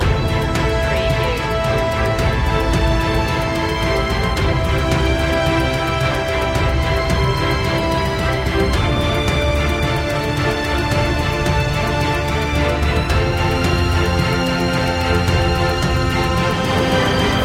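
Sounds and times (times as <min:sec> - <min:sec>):
battle victory music loop: 0:00.0 - 0:17.4.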